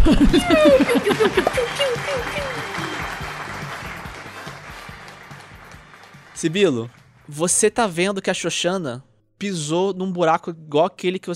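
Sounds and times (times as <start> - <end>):
speech: 0.0 - 2.6, 6.4 - 11.3
laughter: 0.0 - 4.8
voice imitating festive town-square crowd cheering: 0.3 - 3.4.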